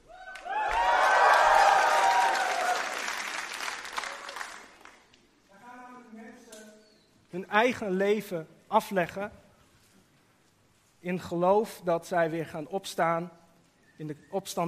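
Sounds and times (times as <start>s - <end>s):
crowd cheering and clapping: 0.0s - 5.1s
speech: 7.4s - 9.4s, 11.0s - 13.4s, 14.0s - 14.6s.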